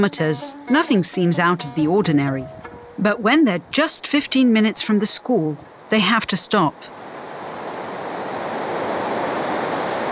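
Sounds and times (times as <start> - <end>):
speech: 0.0 - 7.0
roar of rushing water of a swollen river: 6.9 - 10.0.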